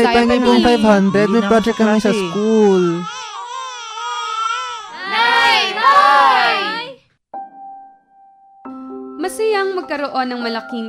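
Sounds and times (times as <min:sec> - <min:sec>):
speech: 0:00.0 - 0:03.2, 0:09.5 - 0:10.8
child crying: 0:00.2 - 0:07.0.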